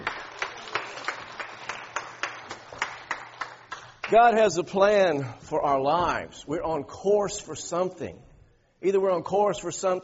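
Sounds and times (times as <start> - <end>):
audience clapping hands in steady unison: 0.0 - 4.4
speech: 4.1 - 10.0.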